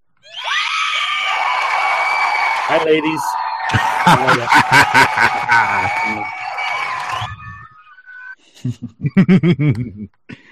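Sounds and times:
audience cheering and screaming: 0:00.2 - 0:08.4
audience applause: 0:01.2 - 0:07.8
speech: 0:02.7 - 0:06.4, 0:08.6 - 0:10.4
laughter: 0:03.6 - 0:07.6, 0:08.5 - 0:10.1.

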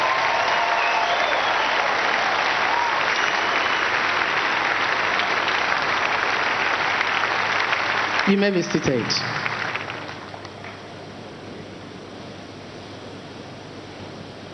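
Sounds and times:
audience clapping: 0:00.0 - 0:11.0
speech: 0:08.3 - 0:09.5.

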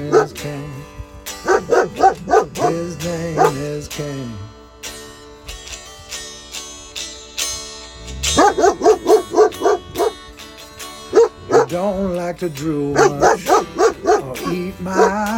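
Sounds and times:
dog barking: 0:00.0 - 0:00.5, 0:01.4 - 0:03.7, 0:08.3 - 0:10.2, 0:11.1 - 0:11.8, 0:12.9 - 0:15.3
speech: 0:12.4 - 0:13.2.

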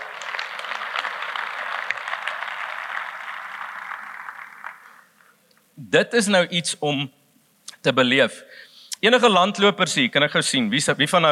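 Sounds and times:
audience applause: 0:00.0 - 0:05.3
speech: 0:05.9 - 0:07.2, 0:07.8 - 0:11.3.

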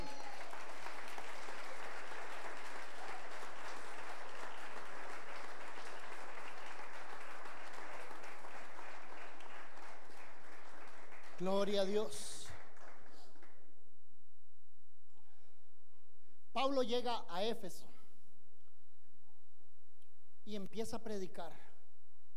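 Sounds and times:
audience applause: 0:00.0 - 0:13.6
speech: 0:11.4 - 0:12.3, 0:16.6 - 0:17.9, 0:20.5 - 0:21.7.

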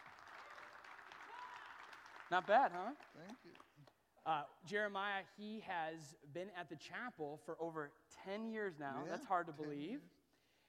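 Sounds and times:
audience applause: 0:00.0 - 0:03.7
speech: 0:02.3 - 0:10.2.

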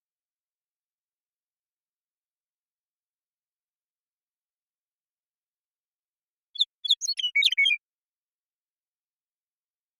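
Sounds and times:
Western meadowlark song: 0:06.6 - 0:07.9.

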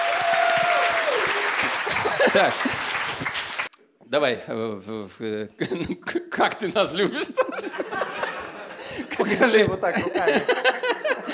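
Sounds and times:
live show audience applauding a guest: 0:00.0 - 0:03.7
laughter: 0:01.6 - 0:03.3, 0:06.8 - 0:11.3
speech: 0:02.3 - 0:02.9, 0:04.1 - 0:07.8, 0:09.2 - 0:11.2.

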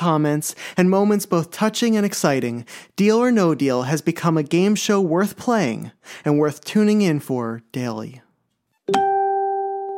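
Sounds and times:
speech: 0:00.0 - 0:08.2
notification chime: 0:08.9 - 0:09.9.

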